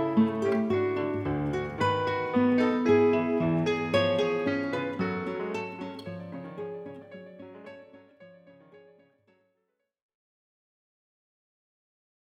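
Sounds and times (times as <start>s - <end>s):
allegro concerto in D: 0.0s - 7.5s.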